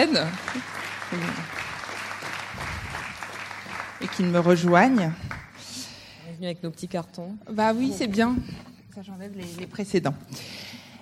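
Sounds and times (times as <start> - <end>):
speech: 0.0 - 1.6, 4.0 - 5.3, 6.4 - 10.7
audience applause: 0.0 - 5.6.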